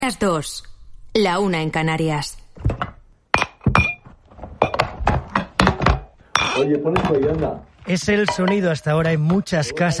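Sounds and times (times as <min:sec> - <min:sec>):
speech: 0:00.0 - 0:02.8, 0:06.6 - 0:09.9
plates, glasses and cutlery set on a table: 0:03.4 - 0:07.4, 0:08.0 - 0:09.5.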